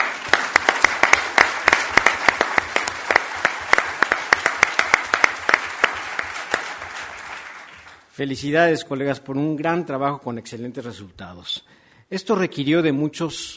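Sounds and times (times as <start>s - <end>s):
audience applause: 0.0s - 8.1s
speech: 8.2s - 13.5s.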